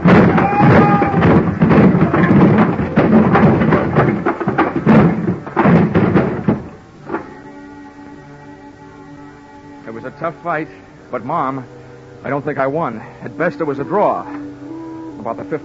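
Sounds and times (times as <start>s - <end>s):
pile of wooden boxes crashing down: 0.0s - 7.8s
speech: 10.3s - 14.5s, 15.2s - 15.6s.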